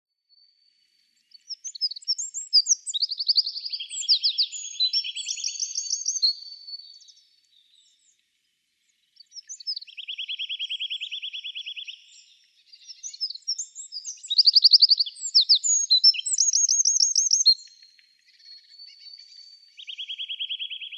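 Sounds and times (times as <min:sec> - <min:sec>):
Eurasian wren singing trills: 0:01.4 - 0:07.1, 0:09.3 - 0:17.9, 0:18.8 - 0:20.9.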